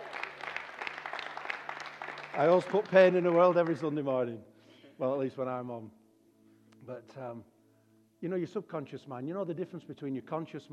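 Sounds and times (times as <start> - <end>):
audience applause: 0.0 - 4.0
speech: 2.4 - 6.0, 6.9 - 7.5, 8.2 - 10.7.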